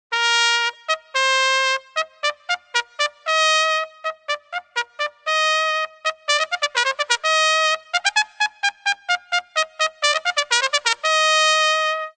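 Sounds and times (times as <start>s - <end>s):
trumpet: 0.1s - 12.1s.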